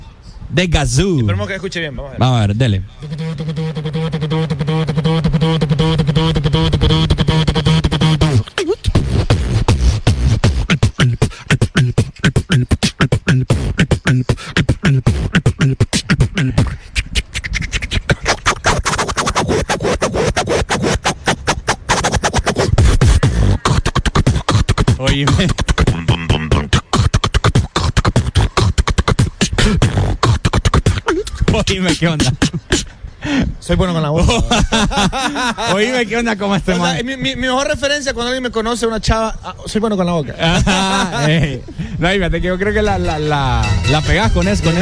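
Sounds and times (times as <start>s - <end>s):
speech: 0.5s - 3.6s, 33.7s - 44.7s
beatboxer imitating techno with the mouth: 2.9s - 33.6s
laughter: 34.2s - 36.2s, 40.3s - 41.8s.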